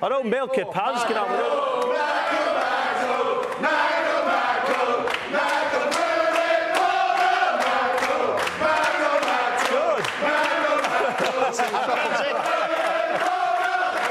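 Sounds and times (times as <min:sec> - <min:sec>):
speech: 0:00.0 - 0:02.4
choir chanting a football-style player's song: 0:00.9 - 0:14.1
laughter: 0:09.1 - 0:14.1.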